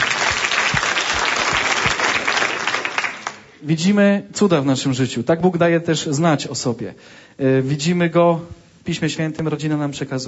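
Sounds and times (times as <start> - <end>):
audience applause: 0.0 - 3.6
speech: 3.6 - 10.2.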